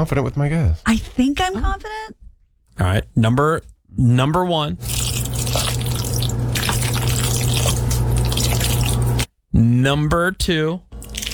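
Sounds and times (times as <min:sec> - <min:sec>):
speech: 0:00.0 - 0:02.2, 0:02.8 - 0:05.2, 0:09.6 - 0:10.8
Kraft macaroni and cheese being stirred: 0:04.8 - 0:09.3, 0:11.0 - 0:11.3.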